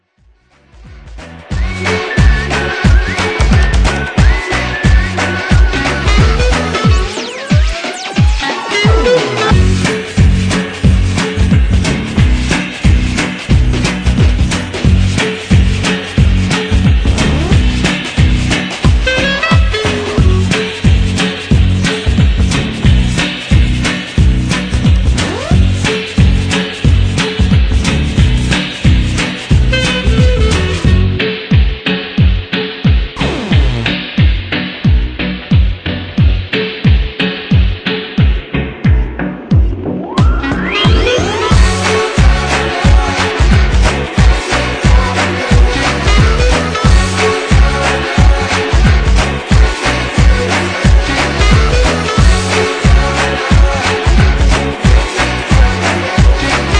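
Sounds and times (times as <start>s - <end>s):
swing mambo music: 1.0s - 56.7s.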